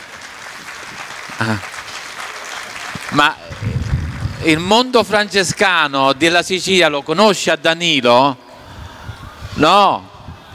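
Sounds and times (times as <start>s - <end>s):
audience applause: 0.0s - 5.6s
speech: 1.4s - 1.8s, 3.1s - 3.7s, 4.4s - 8.4s, 9.6s - 10.1s.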